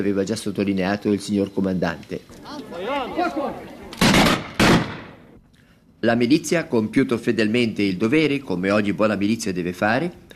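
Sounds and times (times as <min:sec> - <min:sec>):
speech: 0:00.0 - 0:03.8, 0:06.0 - 0:10.3
volley of about ten rifles firing, one misfiring: 0:04.0 - 0:05.3.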